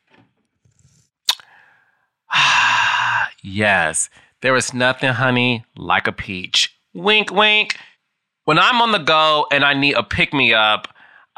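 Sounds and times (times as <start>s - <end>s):
sipping a drink of water: 1.3s - 1.7s
loud breathy satisfied exhale: 1.4s - 3.4s, 11.0s - 11.3s
speech: 3.4s - 7.9s, 8.5s - 11.3s.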